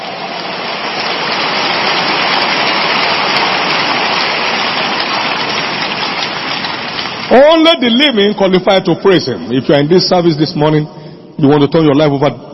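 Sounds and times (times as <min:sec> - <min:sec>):
crowd clapping: 0:00.0 - 0:08.6
speech: 0:07.3 - 0:12.5.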